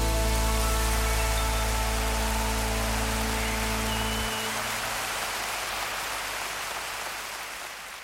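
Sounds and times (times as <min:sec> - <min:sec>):
applause: 0:00.1 - 0:08.0.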